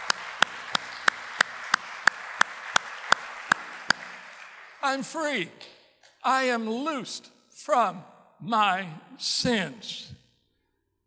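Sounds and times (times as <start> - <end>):
audience applause: 0.0 - 5.5
speech: 4.8 - 10.2.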